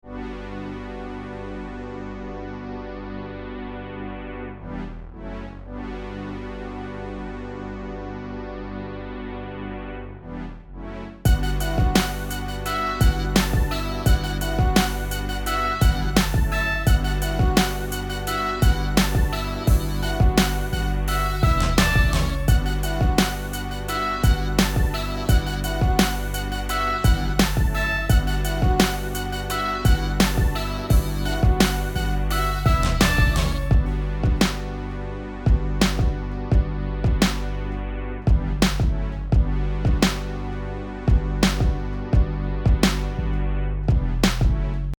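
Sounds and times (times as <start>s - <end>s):
music beat: 11.3s - 37.7s, 38.3s - 40.5s, 41.1s - 44.9s.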